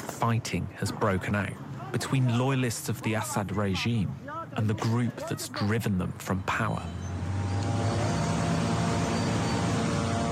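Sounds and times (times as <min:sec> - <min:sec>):
speech: 0:00.2 - 0:07.1
surveillance drones buzzing overhead: 0:06.8 - 0:10.2.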